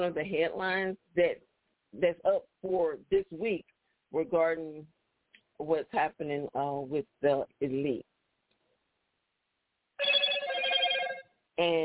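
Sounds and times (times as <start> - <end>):
speech: 0.0 - 5.0, 5.6 - 8.1, 11.6 - 11.8
telephone ringing: 10.0 - 11.4.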